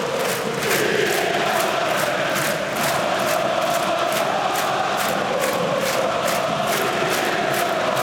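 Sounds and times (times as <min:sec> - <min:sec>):
football crowd roaring and chanting in a stadium: 0:00.0 - 0:08.0.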